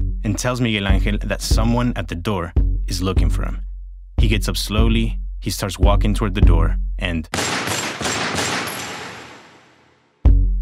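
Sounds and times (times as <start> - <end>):
speech: 0.3 - 7.5
gunshots fired at a man at a restaurant door: 7.3 - 10.2.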